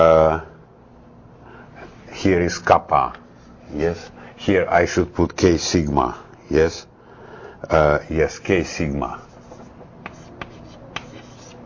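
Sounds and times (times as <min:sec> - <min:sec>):
speech: 0:02.2 - 0:06.9, 0:07.6 - 0:09.2
writing on a board during a mathematics lecture: 0:09.0 - 0:11.6.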